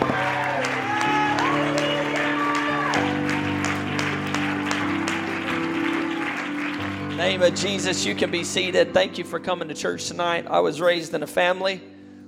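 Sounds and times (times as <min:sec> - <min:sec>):
audience shouting: 0:00.0 - 0:03.2
audience clapping: 0:00.0 - 0:08.7
organ-like music: 0:00.0 - 0:12.2
speech: 0:07.3 - 0:11.9.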